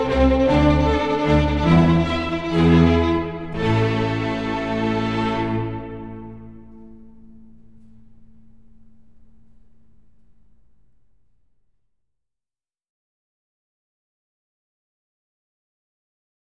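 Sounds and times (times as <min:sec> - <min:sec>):
cello concerto for cello, strings and continuo in A minor: 0:00.0 - 0:10.9.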